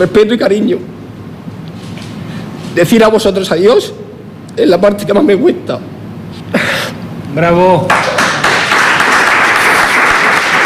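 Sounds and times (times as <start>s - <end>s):
speech: 0.0s - 1.0s, 2.8s - 4.0s, 4.6s - 5.9s, 7.4s - 8.0s
audience applause: 7.9s - 10.6s.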